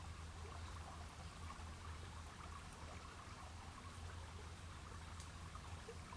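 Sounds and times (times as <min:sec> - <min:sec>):
flowing river water: 0:00.0 - 0:06.1.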